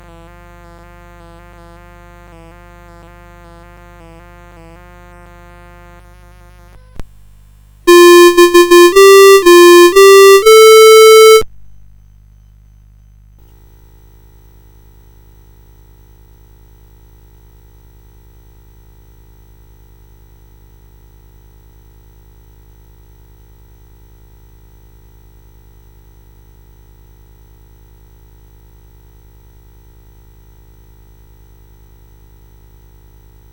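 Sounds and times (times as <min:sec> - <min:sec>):
royal intro music: 0:07.9 - 0:11.4.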